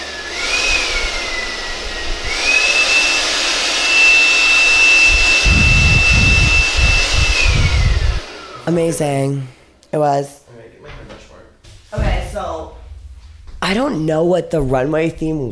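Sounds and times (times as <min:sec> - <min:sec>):
wind machine blowing: 0:00.0 - 0:08.7
speech: 0:08.7 - 0:10.4, 0:13.7 - 0:15.5.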